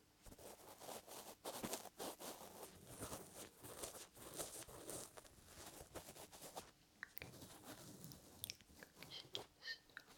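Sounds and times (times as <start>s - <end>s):
ear massage rubbing and crackling: 0.2s - 10.1s.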